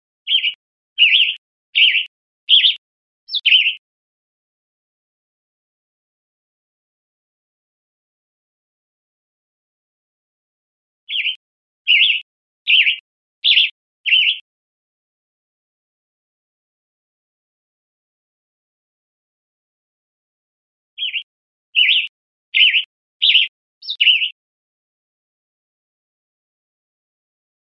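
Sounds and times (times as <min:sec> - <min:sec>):
bird wavering chirps: 0:00.3 - 0:03.8, 0:11.1 - 0:14.4, 0:21.0 - 0:24.4.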